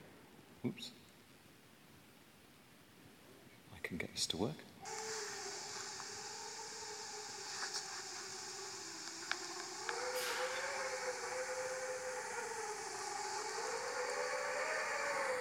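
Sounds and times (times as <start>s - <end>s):
speech: 0.6s - 1.0s, 3.9s - 5.0s
wind howling: 4.9s - 15.3s.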